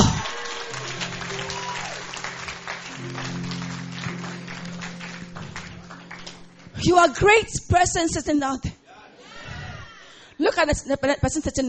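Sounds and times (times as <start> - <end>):
audience clapping: 0.0 - 7.2
speech: 6.8 - 8.8, 10.6 - 11.6.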